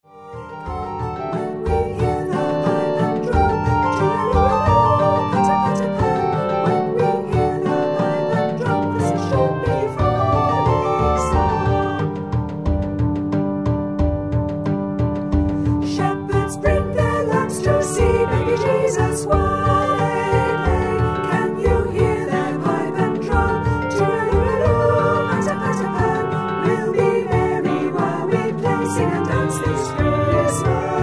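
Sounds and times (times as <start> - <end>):
easy band arrangement: 0.4 - 31.0.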